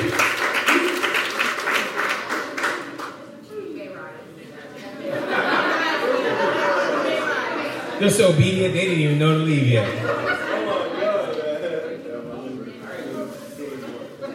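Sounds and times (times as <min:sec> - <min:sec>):
audience clapping and shouting: 0:00.0 - 0:03.3
laughter: 0:04.8 - 0:12.3
speech: 0:08.0 - 0:10.3.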